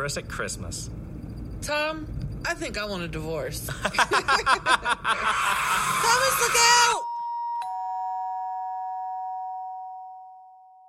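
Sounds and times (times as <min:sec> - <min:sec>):
speech: 0:00.0 - 0:01.0, 0:01.6 - 0:07.1
doorbell ringing: 0:07.0 - 0:10.8.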